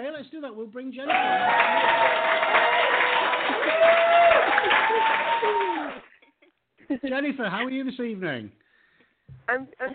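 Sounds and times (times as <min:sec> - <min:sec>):
speech: 0:00.1 - 0:02.3, 0:06.9 - 0:08.6, 0:09.3 - 0:09.9
audience applause welcoming a guest onto an evening show: 0:01.1 - 0:06.1
cheering voices and whoops: 0:01.1 - 0:06.1.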